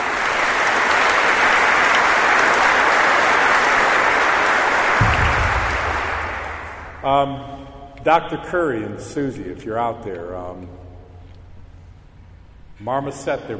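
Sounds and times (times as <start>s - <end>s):
audience applause: 0.0s - 7.0s
speech: 7.1s - 10.8s, 12.8s - 13.5s.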